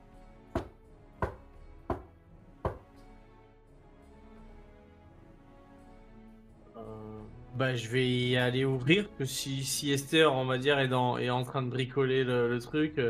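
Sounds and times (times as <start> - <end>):
door knocker knocks: 0.6 - 2.1
speech: 7.6 - 13.0.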